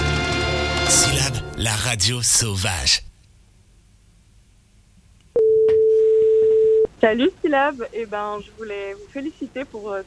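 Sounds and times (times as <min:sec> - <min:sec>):
speech: 0:00.9 - 0:03.0, 0:07.0 - 0:10.0
telephone line tone: 0:05.4 - 0:06.9.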